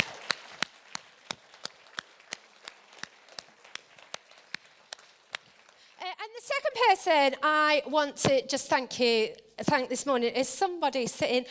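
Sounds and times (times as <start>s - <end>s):
crisp evenly spaced hand claps: 0.0s - 5.8s
speech: 6.5s - 11.4s.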